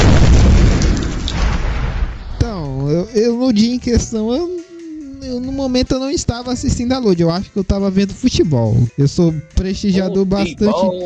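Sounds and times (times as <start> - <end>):
bomb explosion sound effect added in editing: 0.0 - 2.6
speech: 3.2 - 4.6, 5.2 - 11.0.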